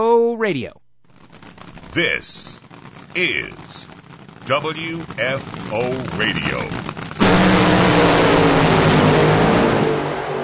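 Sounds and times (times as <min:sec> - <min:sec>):
speech: 0:00.0 - 0:00.8, 0:02.0 - 0:03.9, 0:04.5 - 0:06.9
drag racing cars roaring down CMAX Dragway at the NHRA Carolina Nationals: 0:05.0 - 0:10.4.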